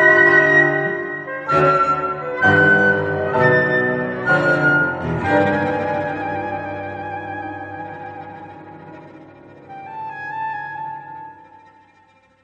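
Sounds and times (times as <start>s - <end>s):
flutes: 0.0s - 12.1s
cello: 0.0s - 12.4s
piano: 0.0s - 12.4s.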